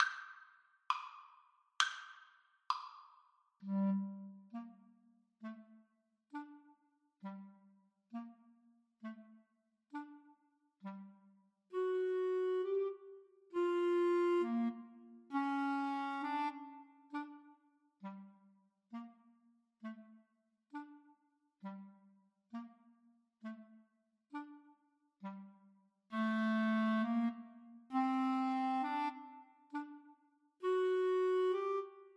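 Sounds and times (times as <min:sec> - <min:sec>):
clarinet duet: 0:03.6 - 0:05.7, 0:06.3 - 0:08.4, 0:09.9 - 0:20.1, 0:24.3 - 0:32.1.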